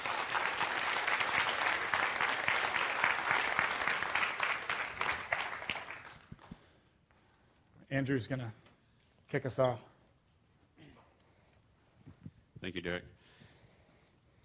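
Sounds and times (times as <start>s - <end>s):
audience applause welcoming two speakers at a talk: 0.0s - 6.5s
speech: 7.9s - 8.6s, 9.3s - 9.9s, 12.6s - 13.2s.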